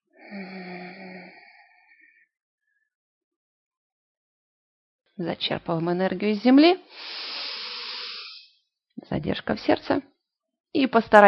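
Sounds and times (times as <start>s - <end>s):
forceful exhale during a breathing exercise: 0.2s - 1.7s, 6.9s - 8.5s
speech: 5.2s - 7.3s, 9.0s - 10.1s, 10.7s - 11.2s.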